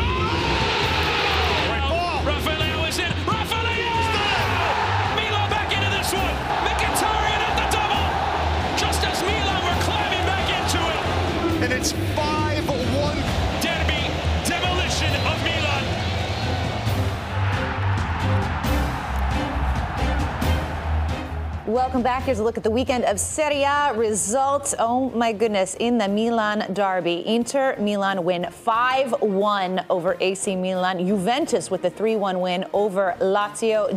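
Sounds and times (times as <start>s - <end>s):
San Siro football stadium crowd roaring: 0.0s - 22.4s
speech: 21.9s - 33.9s.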